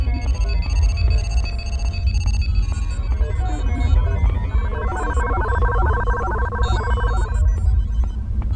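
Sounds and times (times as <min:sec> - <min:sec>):
electronic beeps and chirps: 0:00.1 - 0:08.0
heavy low hum on a sci-fi spaceship bridge: 0:02.2 - 0:08.4.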